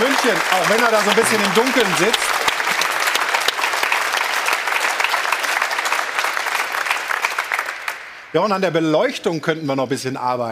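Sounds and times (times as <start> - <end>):
audience applause: 0.0 - 8.4
speech: 0.1 - 2.4, 8.4 - 10.5.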